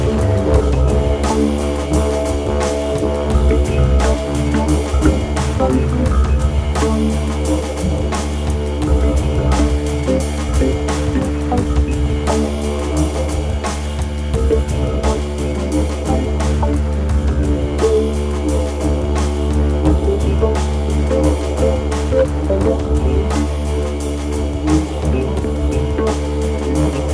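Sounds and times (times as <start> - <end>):
didgeridoo music: 0.0 - 27.1.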